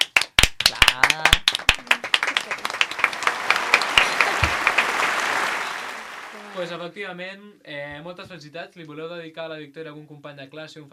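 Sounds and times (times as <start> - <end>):
audience applause: 0.0 - 6.9
speech: 6.6 - 10.9.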